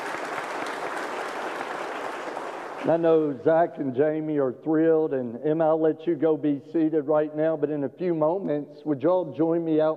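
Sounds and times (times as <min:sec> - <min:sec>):
audience applauding: 0:00.0 - 0:03.1
speech: 0:02.8 - 0:09.9.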